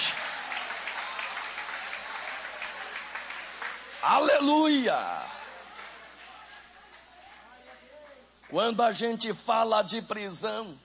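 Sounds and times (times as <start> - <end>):
audience applauding: 0.0 - 8.2
speech: 4.0 - 5.4, 8.5 - 10.8.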